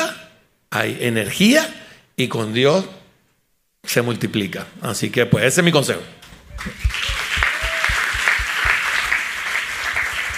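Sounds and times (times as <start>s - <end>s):
speech: 0.8s - 3.0s, 3.8s - 7.0s
audience applause: 6.5s - 10.3s.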